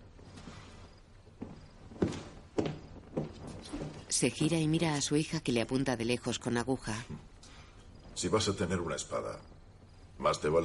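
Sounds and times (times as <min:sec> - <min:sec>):
soft footsteps walking to a door: 0:00.0 - 0:05.1
speech: 0:04.2 - 0:07.3, 0:08.2 - 0:09.6, 0:10.2 - 0:10.6.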